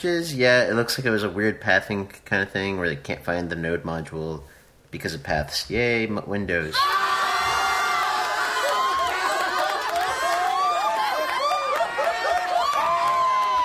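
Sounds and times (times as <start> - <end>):
speech: 0.0 - 7.0
crowd cheering with whoops and excited shouts: 6.7 - 13.6.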